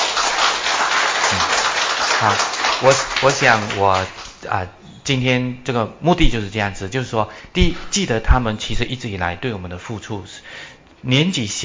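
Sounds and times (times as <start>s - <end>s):
audience applause: 0.0s - 4.4s
speech: 2.2s - 11.6s.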